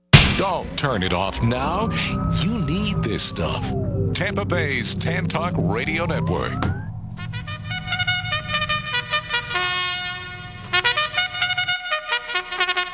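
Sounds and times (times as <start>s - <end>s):
speech: 0.4s - 6.8s
horns honking: 7.1s - 12.9s.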